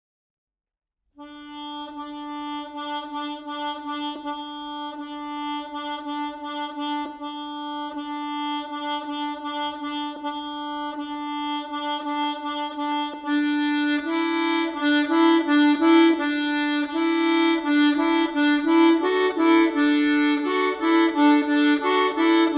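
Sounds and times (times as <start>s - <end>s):
instrumental music: 1.2s - 22.5s.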